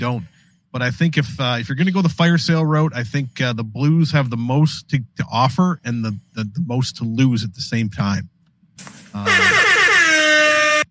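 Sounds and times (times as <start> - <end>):
speech: 0.0 - 9.6
game show buzzer: 9.3 - 10.8.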